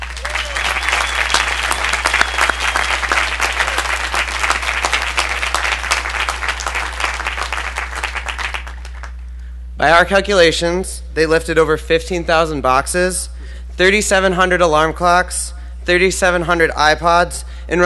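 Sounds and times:
audience applause: 0.0 - 9.2
speech: 9.8 - 17.8.

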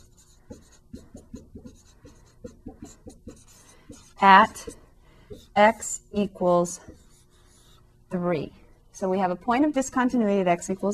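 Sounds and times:
writing on a board: 0.0 - 7.8
speech: 4.2 - 4.8, 5.6 - 6.9, 8.1 - 10.9.

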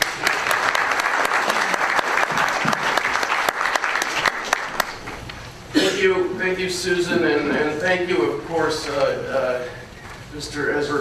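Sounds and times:
university audience applause welcoming a lecturer: 0.0 - 5.2
speech: 6.0 - 10.9.

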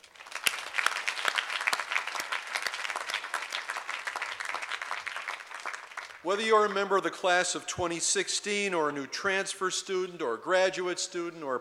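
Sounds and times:
audience applause at a Cornell University welcome in Ithaca: 0.0 - 6.4
speech: 6.2 - 11.5.

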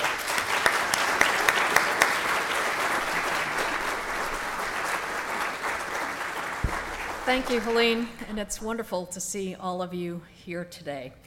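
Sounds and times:
audience applause for a university dean's introduction: 0.0 - 8.6
speech: 7.3 - 11.2.

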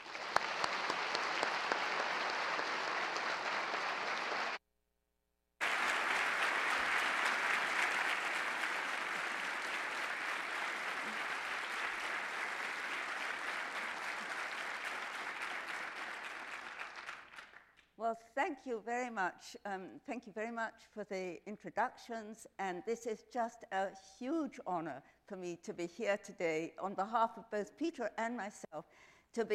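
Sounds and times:
audience applause welcoming scientist Rosemary Grant at Cornell: 0.0 - 4.6, 5.6 - 17.7
speech: 18.0 - 29.5.

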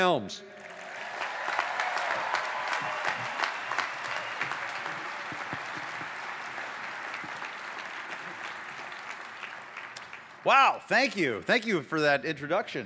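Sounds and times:
speech: 0.0 - 0.7, 10.4 - 12.8
audience applause: 0.6 - 10.4.

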